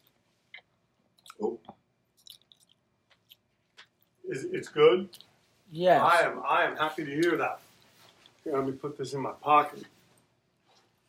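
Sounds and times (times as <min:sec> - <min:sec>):
person chewing chicken: 0:00.0 - 0:04.2
speech: 0:04.3 - 0:07.6, 0:08.4 - 0:10.0.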